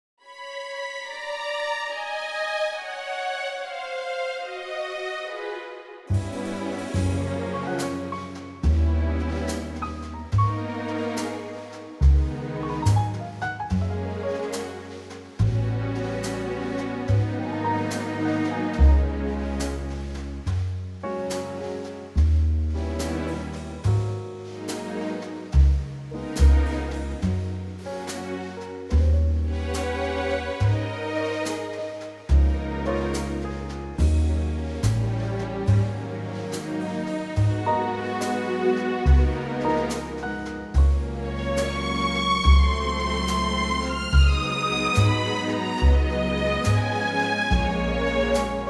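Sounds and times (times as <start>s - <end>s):
orchestra playing in G flat: 0.2s - 48.6s.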